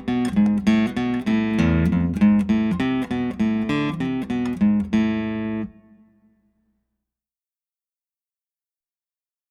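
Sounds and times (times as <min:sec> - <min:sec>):
guitar picking studies in A minor: 0:00.0 - 0:06.3.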